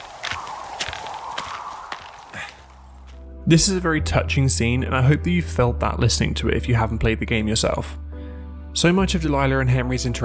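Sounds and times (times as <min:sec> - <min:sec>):
footsteps of a character hiking in the video game Firewatch: 0:00.0 - 0:03.3
speech: 0:03.5 - 0:08.0, 0:08.8 - 0:10.2.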